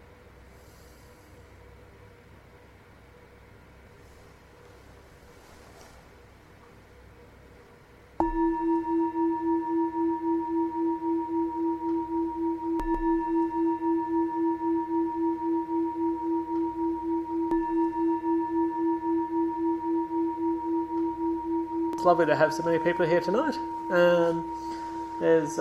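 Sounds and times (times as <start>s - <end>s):
meditation gong ringing: 8.2s - 25.6s
speech: 22.0s - 25.6s.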